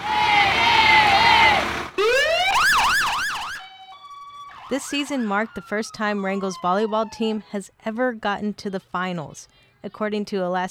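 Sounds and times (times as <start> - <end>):
fire truck siren: 0.1 - 7.5
speech: 4.7 - 10.6.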